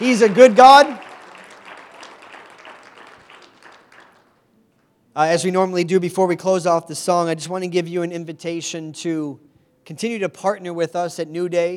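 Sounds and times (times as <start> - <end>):
speech: 0.0 - 1.0, 5.2 - 11.7
audience round of applause: 0.0 - 4.4.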